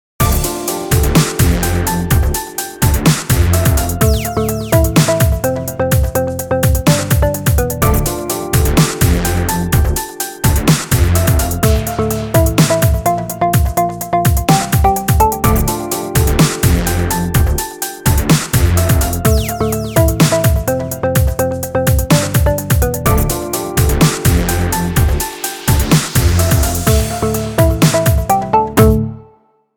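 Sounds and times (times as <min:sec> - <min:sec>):
halftime dub mix: 0:00.2 - 0:29.1.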